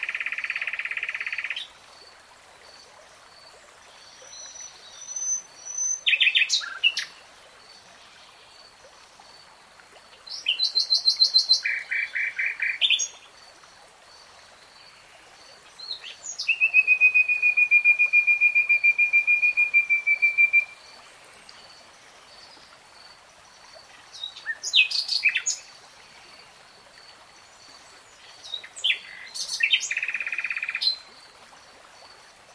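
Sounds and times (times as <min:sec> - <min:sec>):
nightingale song: 0:00.0 - 0:01.8, 0:04.0 - 0:07.2, 0:10.2 - 0:13.4, 0:15.6 - 0:22.7, 0:24.1 - 0:25.7, 0:27.5 - 0:31.1
steady background hiss: 0:00.0 - 0:32.5.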